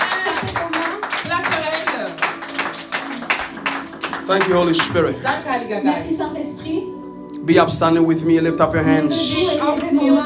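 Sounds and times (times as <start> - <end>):
audience clapping hands: 0.0 - 5.4
speech: 4.3 - 10.2.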